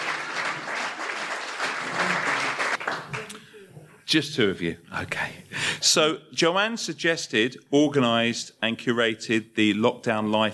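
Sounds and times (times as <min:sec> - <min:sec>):
audience applause: 0:00.0 - 0:03.5
speech: 0:04.1 - 0:10.5.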